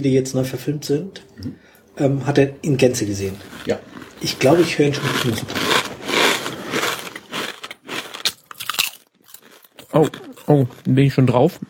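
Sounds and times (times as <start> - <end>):
speech: 0.0 - 5.7, 10.0 - 11.6
crunching potato chips from a bag: 3.0 - 11.6.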